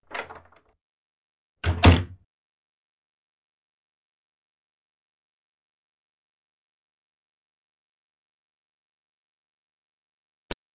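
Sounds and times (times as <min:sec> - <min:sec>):
doors: 0:00.0 - 0:00.8, 0:01.6 - 0:02.3.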